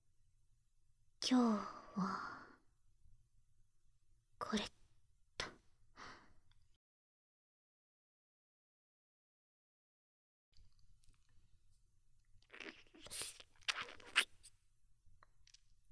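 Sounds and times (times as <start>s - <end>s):
speech: 1.3s - 2.3s, 4.4s - 4.8s
sipping an energy drink through a straw: 12.4s - 14.6s.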